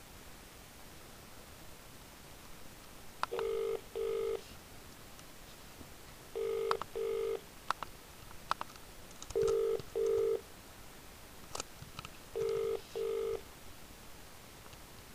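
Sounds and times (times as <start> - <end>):
soft hiss: 0.0 - 15.1
telephone keypad tones dialling an extension on a solicitors' office line: 3.3 - 4.4, 6.4 - 7.4, 9.4 - 10.4, 12.4 - 13.4.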